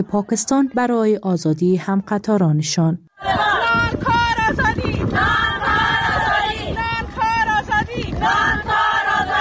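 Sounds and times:
speech: 0.0 - 4.2
protest march crowd chanting: 3.1 - 9.3.

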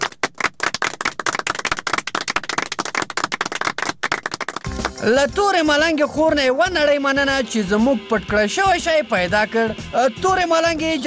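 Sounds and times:
audience clapping: 0.0 - 5.8
speech: 5.0 - 11.0.

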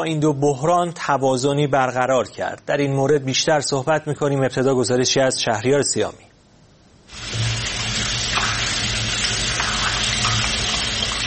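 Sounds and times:
speech: 0.0 - 6.3
water gushing from an open tap during a handwashing demonstration: 7.1 - 11.2.

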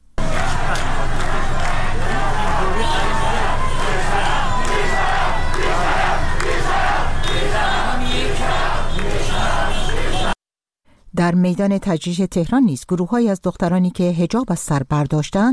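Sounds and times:
protest crowd chanting slogans: 0.2 - 10.4
car horns: 0.4 - 10.4
speech: 11.3 - 15.5.

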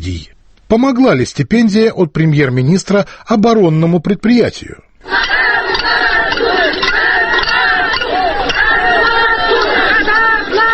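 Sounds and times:
speech: 0.0 - 5.4
large protest rally crowd shouting and chanting: 5.0 - 10.7.

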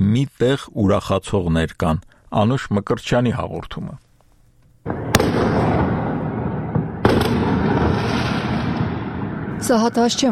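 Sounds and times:
speech: 0.0 - 4.0, 9.6 - 10.3
fireworks crackling at night in city streets: 4.8 - 9.9.

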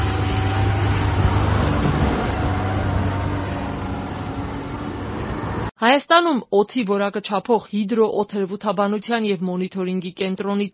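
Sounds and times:
truck leaving a construction site driving along a road in Yerevan: 0.0 - 5.7
speech: 5.8 - 10.7.

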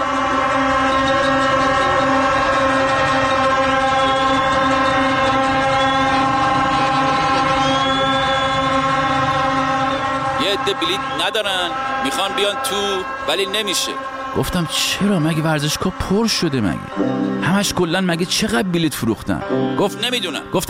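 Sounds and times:
crowd honking car horns: 0.0 - 18.7, 19.4 - 20.6
speech: 11.4 - 20.6.

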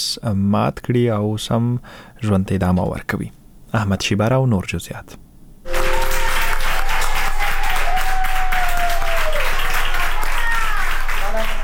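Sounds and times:
speech: 0.0 - 5.2
doctors and nurses in a Spanish hospital clapping: 5.7 - 11.6.

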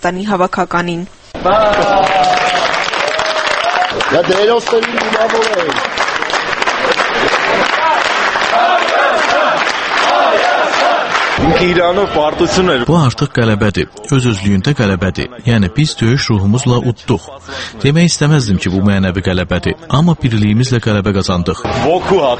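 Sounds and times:
speech: 0.0 - 2.2, 4.0 - 6.0, 11.4 - 22.3
fans clapping at Yerevan international airport: 1.4 - 15.3
fans chanting in unison at Yerevan international airport: 7.5 - 12.8.

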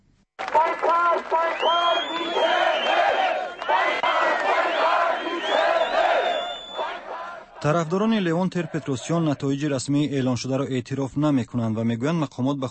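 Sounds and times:
protest crowd chanting in a city square: 0.4 - 9.7
speech: 1.1 - 2.5, 7.6 - 12.7.

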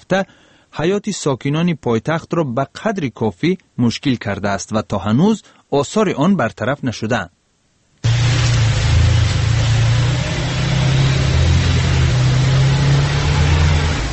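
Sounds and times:
speech: 0.1 - 7.4
stuck taxi engine droning in snow in Dushanbe: 8.0 - 14.1
taxi wheels spinning in snow: 8.0 - 14.1.

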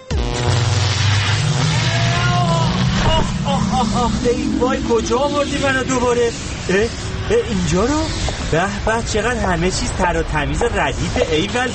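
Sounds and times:
time machine sound effect: 0.3 - 7.3
speech: 4.1 - 11.7.

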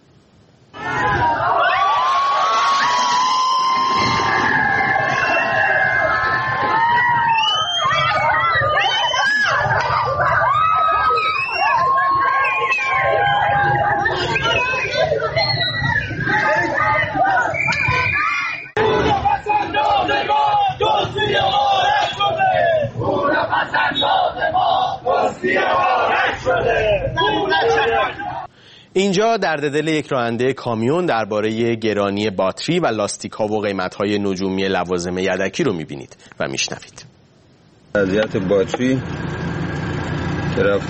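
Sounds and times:
street protest crowd: 0.7 - 28.6
speech: 29.0 - 37.1, 38.0 - 39.4, 40.6 - 40.8.

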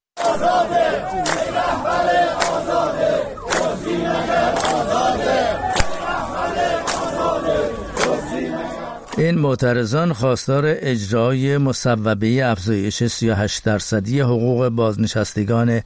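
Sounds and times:
protesting social security retirees chanting slogans against officials in Arak, Iran: 0.2 - 9.4
speech: 0.4 - 3.2, 9.2 - 15.8.

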